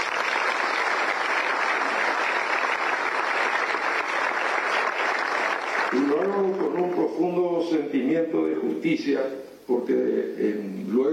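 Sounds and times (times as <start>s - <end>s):
audience applause: 0.0s - 7.2s
speech: 5.9s - 11.1s.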